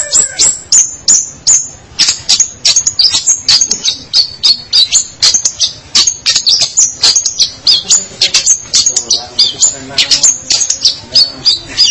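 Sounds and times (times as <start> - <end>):
long-tailed shrike singing: 0.0 - 11.8.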